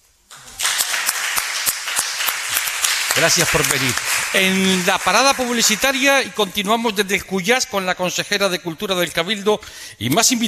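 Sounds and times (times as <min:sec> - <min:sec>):
audience applause at a live show in the Cuyás theatre in Las Palmas: 0:00.3 - 0:06.6
speech: 0:03.2 - 0:10.4.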